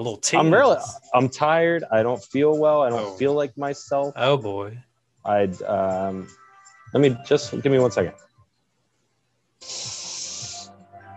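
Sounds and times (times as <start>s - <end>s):
speech: 0.0s - 8.3s, 9.6s - 10.0s
spraying hiss like keyboard cleaner: 9.6s - 10.7s.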